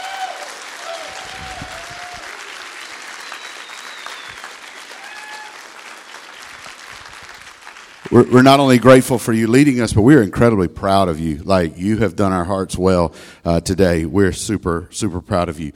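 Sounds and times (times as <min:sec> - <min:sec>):
whoops and cheers: 0:00.0 - 0:05.9
large audience applause: 0:00.0 - 0:08.2
speech: 0:08.1 - 0:15.7.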